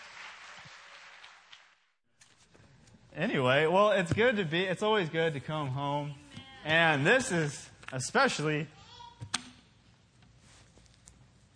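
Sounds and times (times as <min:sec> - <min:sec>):
faint audience applause welcoming guests on stage: 0:00.0 - 0:02.0
speech: 0:03.2 - 0:08.8.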